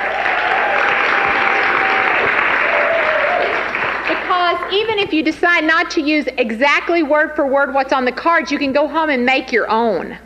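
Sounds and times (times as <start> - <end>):
audience applause: 0.0 - 5.0
speech: 4.7 - 10.2.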